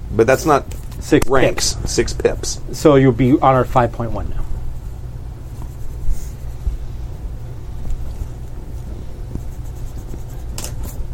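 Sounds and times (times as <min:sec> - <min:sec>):
speech: 0:00.2 - 0:04.4
low hum: 0:01.2 - 0:11.1
pen or pencil writing a number on paper: 0:05.5 - 0:06.7, 0:08.7 - 0:11.1.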